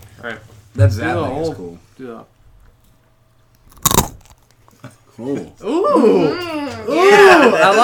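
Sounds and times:
speech: 0:00.2 - 0:02.4, 0:05.2 - 0:07.8
someone biting into a firm pretzel: 0:03.6 - 0:04.7.

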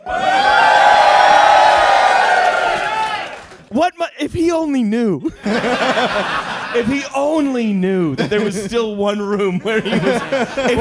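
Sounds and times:
crowd cheering and whooping: 0:00.0 - 0:03.6
speech: 0:03.8 - 0:10.8
laughter: 0:05.2 - 0:07.2, 0:08.0 - 0:10.8.

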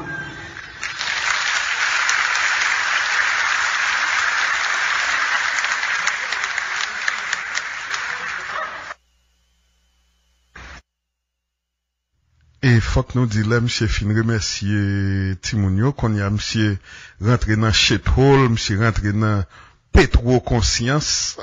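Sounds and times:
applause: 0:00.4 - 0:09.0
speech: 0:13.0 - 0:21.4.

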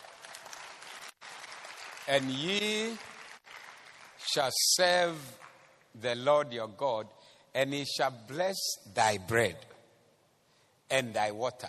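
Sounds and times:
audience clapping: 0:00.0 - 0:06.0
speech: 0:02.1 - 0:03.2, 0:04.2 - 0:09.7, 0:10.9 - 0:11.6.

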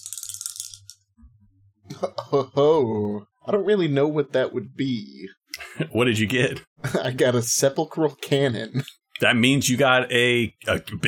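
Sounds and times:
dice rattling and clattering: 0:00.0 - 0:01.0
speech: 0:02.0 - 0:11.0.

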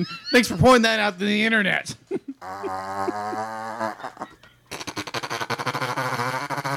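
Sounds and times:
speech: 0:00.0 - 0:04.4
rapid machine-gun fart: 0:02.4 - 0:06.7.

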